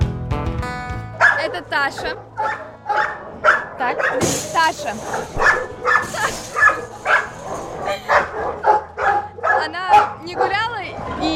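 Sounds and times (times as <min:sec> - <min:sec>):
dog barking: 0:01.1 - 0:04.4, 0:05.0 - 0:11.0
speech: 0:01.5 - 0:02.7, 0:03.8 - 0:07.0
dog yipping and whining: 0:05.0 - 0:09.3.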